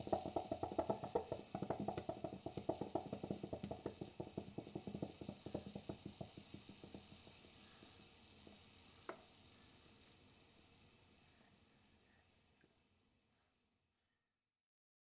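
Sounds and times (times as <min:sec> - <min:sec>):
drip coffee maker: 0:00.0 - 0:11.6.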